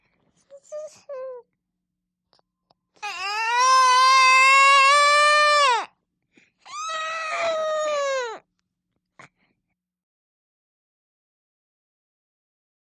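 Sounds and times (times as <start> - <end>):
thirteen and a half month old baby girl fake crying: 3.0 - 5.9, 6.6 - 8.4.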